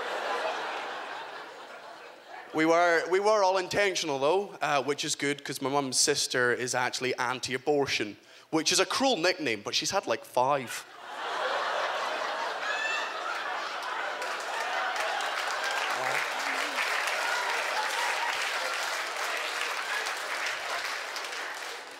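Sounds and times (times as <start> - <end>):
audience clapping: 0.0 - 1.5, 13.1 - 21.9
laughter: 0.0 - 2.6, 10.9 - 21.7
speech: 2.5 - 11.0.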